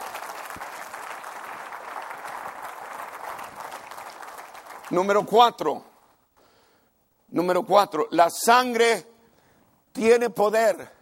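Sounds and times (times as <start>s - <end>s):
audience applauding: 0.0s - 5.3s
speech: 4.9s - 5.9s, 7.4s - 9.1s, 10.0s - 10.9s.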